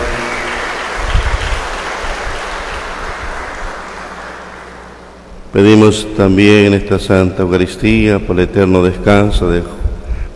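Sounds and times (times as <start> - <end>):
audience applause: 0.0 - 5.0
speech: 5.5 - 9.8.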